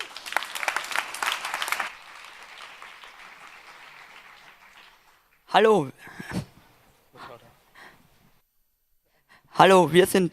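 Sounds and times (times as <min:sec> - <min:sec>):
audience applause: 0:00.0 - 0:05.4
speech: 0:05.5 - 0:06.3, 0:09.6 - 0:10.3.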